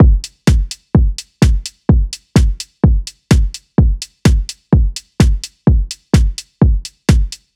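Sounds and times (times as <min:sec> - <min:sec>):
music beat: 0:00.0 - 0:07.5.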